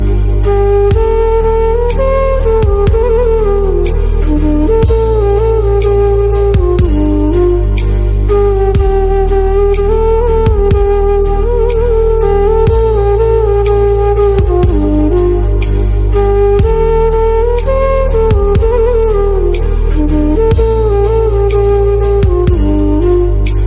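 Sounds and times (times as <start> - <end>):
flute melody: 0.0 - 23.6.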